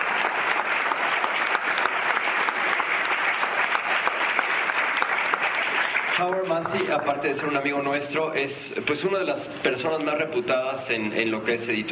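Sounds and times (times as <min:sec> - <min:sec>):
audience applauding a guest introduction at an event: 0:00.0 - 0:08.2
speech: 0:06.2 - 0:11.9.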